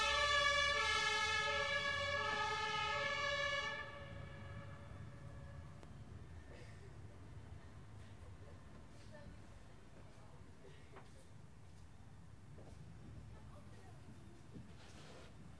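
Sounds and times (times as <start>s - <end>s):
German siren car driving by: 0.0s - 5.8s.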